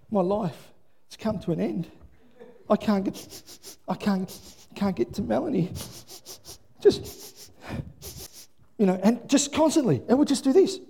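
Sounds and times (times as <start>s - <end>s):
speech: 0.1s - 2.0s, 2.7s - 7.8s, 8.8s - 10.8s
person imitating a dog sniffing: 3.0s - 4.8s, 5.7s - 8.6s.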